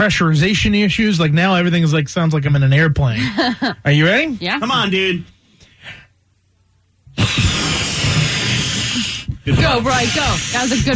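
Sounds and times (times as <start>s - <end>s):
speech: 0.0s - 6.0s, 9.5s - 10.9s
blowing up a balloon with nose: 7.1s - 10.9s.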